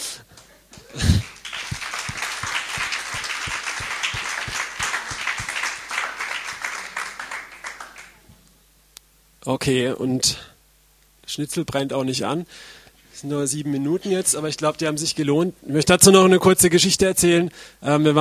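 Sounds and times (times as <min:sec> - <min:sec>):
crowd applause: 0:00.7 - 0:08.2
speech: 0:09.5 - 0:10.5, 0:11.3 - 0:18.1.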